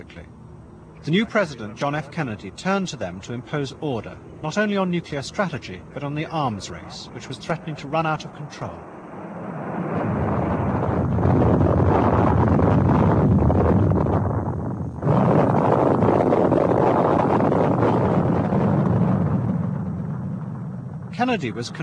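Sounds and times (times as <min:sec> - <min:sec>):
speech: 0:00.0 - 0:00.4, 0:01.0 - 0:08.9, 0:21.3 - 0:21.8
rocket launch roar at lift-off: 0:07.4 - 0:21.8.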